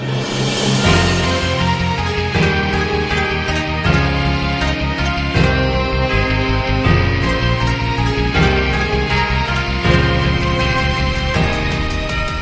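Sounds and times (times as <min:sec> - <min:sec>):
intro music: 0:00.0 - 0:12.4.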